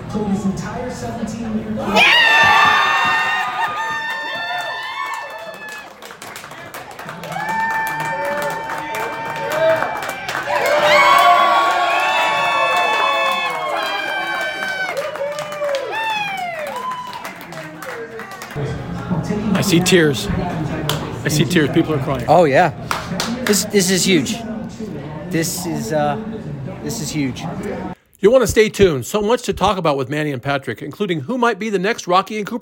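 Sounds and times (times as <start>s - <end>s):
speech: 0.1s - 2.6s, 19.7s - 20.6s, 21.2s - 24.5s, 25.3s - 32.6s
crowd cheering and shouting: 1.8s - 6.0s, 7.2s - 17.5s
scattered clapping: 2.4s - 11.3s, 12.2s - 18.6s.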